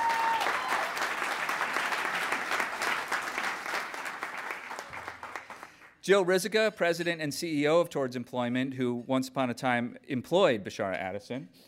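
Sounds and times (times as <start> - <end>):
audience applause: 0.0 - 6.0
speech: 6.1 - 11.6.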